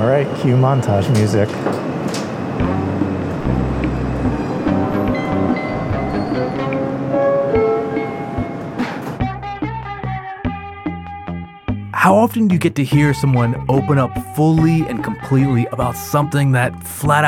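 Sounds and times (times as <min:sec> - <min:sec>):
subway train at the station: 0:00.0 - 0:09.2
speech: 0:00.2 - 0:02.8, 0:12.0 - 0:17.2.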